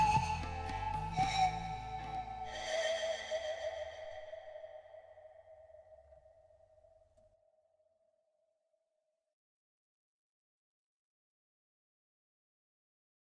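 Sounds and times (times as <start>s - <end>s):
lonely flute: 0.0s - 7.0s.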